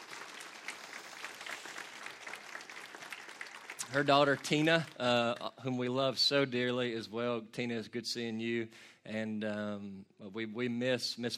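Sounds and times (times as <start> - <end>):
roomful of people applauding: 0.0 - 5.2
speech: 3.9 - 11.3.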